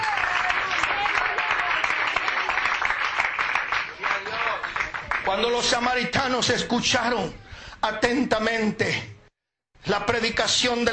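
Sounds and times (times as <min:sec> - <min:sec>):
audience applauding loudly: 0:00.0 - 0:05.6
speech: 0:05.3 - 0:09.1, 0:09.9 - 0:10.9.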